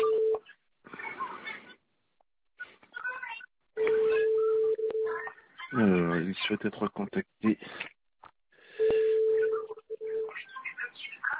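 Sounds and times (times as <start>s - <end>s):
mobile phone ringing: 0.0s - 0.4s, 3.8s - 5.2s, 8.8s - 10.4s
speech: 5.8s - 7.9s.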